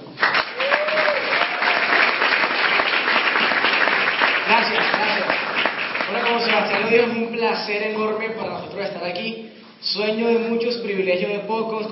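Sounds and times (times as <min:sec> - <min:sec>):
big audience applause: 0:00.0 - 0:07.1
speech: 0:06.9 - 0:11.9.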